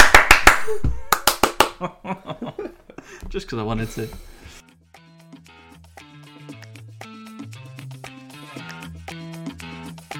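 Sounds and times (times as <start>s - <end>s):
sharp hand claps: 0.0s - 1.9s
speech: 1.8s - 2.5s, 3.3s - 4.3s.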